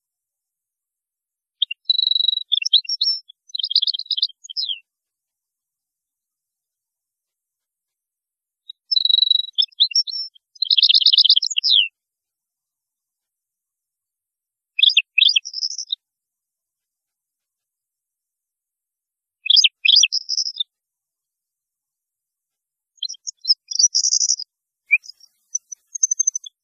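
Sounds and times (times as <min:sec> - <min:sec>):
European goldfinch song: 0:01.6 - 0:04.8, 0:08.7 - 0:11.9, 0:14.8 - 0:16.0, 0:19.4 - 0:20.7, 0:23.0 - 0:26.6.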